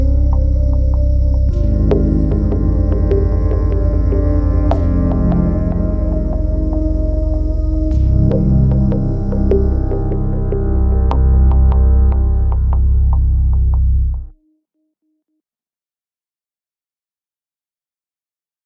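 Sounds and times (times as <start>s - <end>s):
dystopian music: 0.0s - 14.6s.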